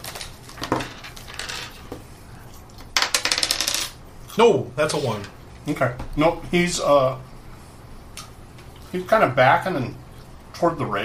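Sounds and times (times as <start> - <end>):
six-sided die clattering across a hard tabletop: 0.6 - 1.8, 3.0 - 4.0
speech: 4.4 - 7.3, 8.9 - 10.0, 10.6 - 11.0.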